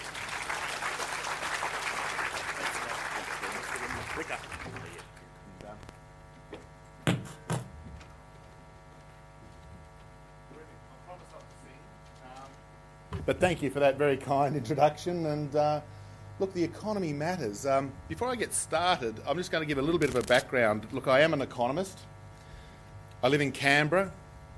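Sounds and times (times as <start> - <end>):
audience applauding to welcome an economist speaker: 0.0 - 5.2
low mains hum: 0.0 - 24.5
speech: 13.3 - 22.1, 23.2 - 24.2.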